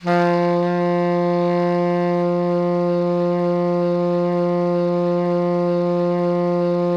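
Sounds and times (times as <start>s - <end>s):
baritone saxophone playing F2 pianissimo: 0.0s - 6.9s.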